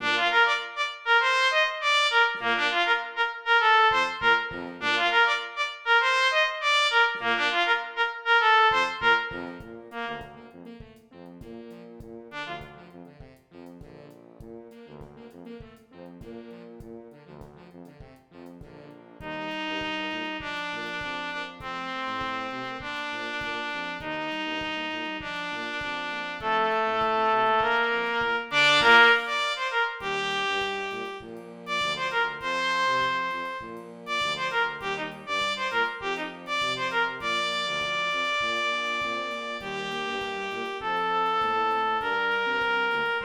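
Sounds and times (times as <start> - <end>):
trumpet: 0.0 - 43.2.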